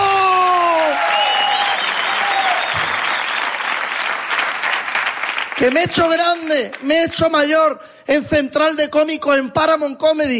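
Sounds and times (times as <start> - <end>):
audience applause: 0.0 - 6.8
speech: 5.6 - 10.3.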